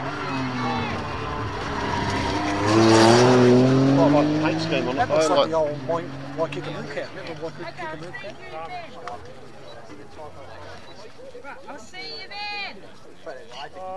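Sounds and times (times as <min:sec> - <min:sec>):
Porsche Carrera sports car driving past at the edge of Mount Crawford forest: 0:00.0 - 0:10.8
speech: 0:04.6 - 0:13.9.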